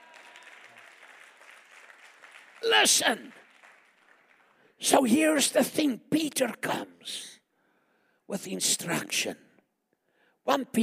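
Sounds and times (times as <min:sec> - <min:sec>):
audience clapping: 0:00.0 - 0:05.4
speech: 0:02.6 - 0:03.4, 0:04.8 - 0:07.3, 0:08.3 - 0:09.4, 0:10.4 - 0:10.8.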